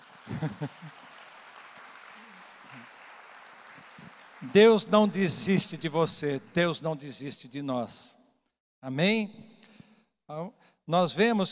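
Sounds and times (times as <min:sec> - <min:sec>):
audience applauding: 0:00.0 - 0:05.8
laughter: 0:00.2 - 0:01.1
speech: 0:00.4 - 0:01.0, 0:04.4 - 0:08.2, 0:08.8 - 0:09.5, 0:10.3 - 0:11.4.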